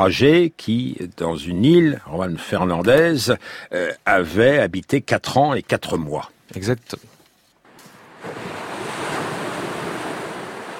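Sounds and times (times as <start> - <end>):
speech: 0.0 - 7.1
wind: 0.0 - 10.7
calm sea waves under a sunny October sky: 7.6 - 10.7.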